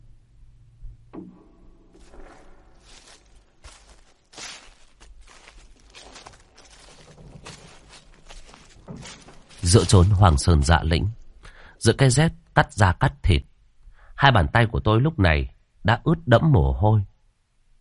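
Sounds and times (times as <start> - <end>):
slow footsteps approaching: 1.9 - 11.5
speech: 9.7 - 11.2, 11.8 - 13.5, 14.2 - 17.1.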